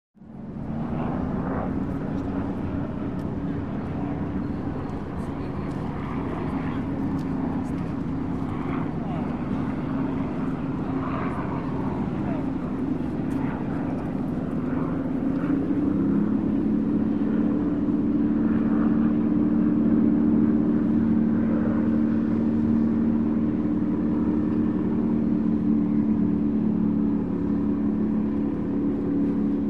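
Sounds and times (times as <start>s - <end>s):
harbor ambience: 0.2s - 29.6s
harbor engine: 0.2s - 29.6s.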